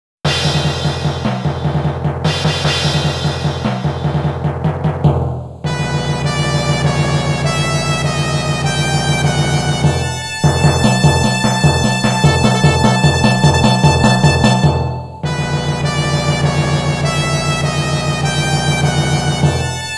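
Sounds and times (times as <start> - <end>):
boss theme music: 0.3 - 19.9.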